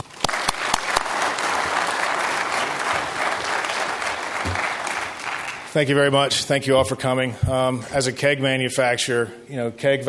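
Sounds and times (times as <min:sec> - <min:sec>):
audience applause: 0:00.0 - 0:05.8
speech: 0:05.8 - 0:10.0.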